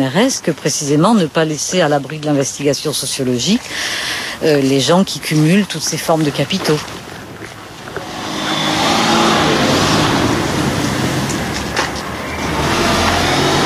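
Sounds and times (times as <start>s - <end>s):
speech: 0.0s - 7.0s
Porsche driving along a street, engine roaring: 7.8s - 13.6s.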